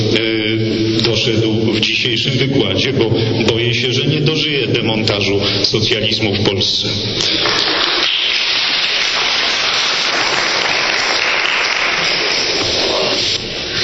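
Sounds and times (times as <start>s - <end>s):
speech: 0.1s - 0.5s, 1.2s - 7.9s
audience applause: 7.3s - 13.4s.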